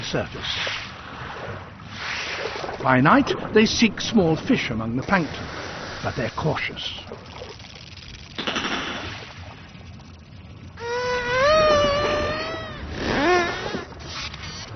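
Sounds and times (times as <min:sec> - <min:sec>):
speech: 0:00.1 - 0:00.8, 0:02.8 - 0:07.4
Pacific spotted dolphin whistles: 0:10.8 - 0:13.9.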